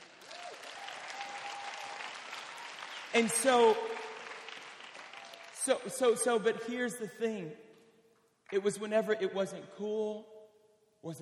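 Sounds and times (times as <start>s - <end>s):
audience clapping: 0.0s - 6.4s
speech: 3.1s - 4.0s, 5.6s - 7.7s, 8.5s - 10.3s, 11.0s - 11.2s.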